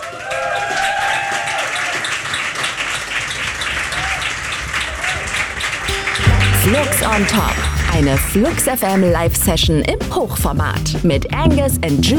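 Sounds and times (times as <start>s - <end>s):
audience applause: 0.0s - 9.2s
speech: 6.7s - 12.1s.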